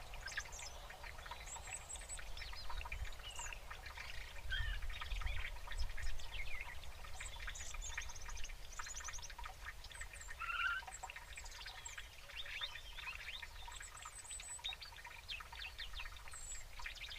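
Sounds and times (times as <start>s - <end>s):
European robin song: 0.0s - 17.1s.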